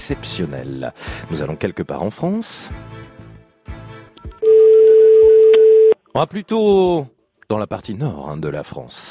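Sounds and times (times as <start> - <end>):
speech: 0.0 - 3.1, 6.1 - 9.1
loud steady telephone line tone: 4.4 - 6.0.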